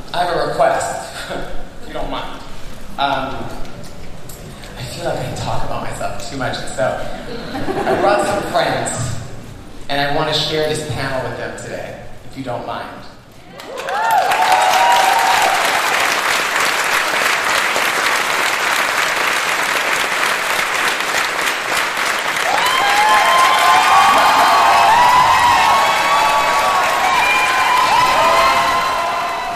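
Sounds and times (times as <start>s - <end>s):
speech: 0.1s - 2.4s, 3.0s - 3.6s, 5.0s - 9.0s, 9.9s - 13.0s
laughter: 7.1s - 8.6s
convention audience cheering and applauding: 13.5s - 29.5s.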